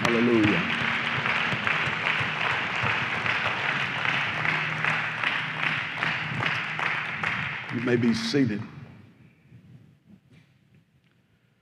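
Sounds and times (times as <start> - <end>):
audience clapping hands: 0.0 - 8.7
speech: 7.9 - 8.8.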